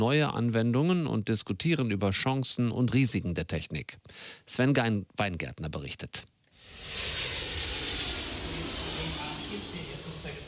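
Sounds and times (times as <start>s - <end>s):
speech: 0.0s - 6.3s
airliners taking off and landing: 6.6s - 10.4s.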